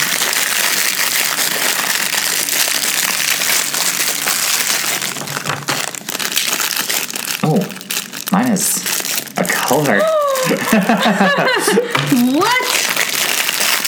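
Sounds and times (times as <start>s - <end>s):
fortune cookie wrappers crinkling: 0.0s - 13.8s
speech: 9.7s - 12.7s
laughter: 9.9s - 12.5s.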